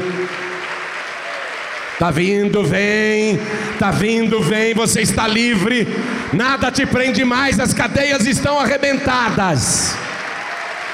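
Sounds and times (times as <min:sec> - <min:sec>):
audience applause: 0:00.0 - 0:02.2, 0:09.9 - 0:10.9
speech: 0:02.0 - 0:10.1.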